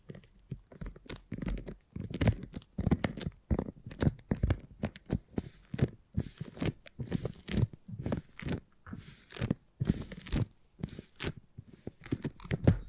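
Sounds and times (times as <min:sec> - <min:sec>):
beeswax crackles, snaps and tearing: 0:00.0 - 0:12.8.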